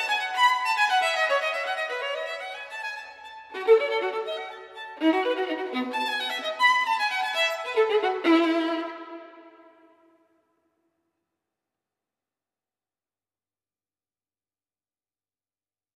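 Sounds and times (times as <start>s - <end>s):
solo violin piece: 0.0s - 10.3s.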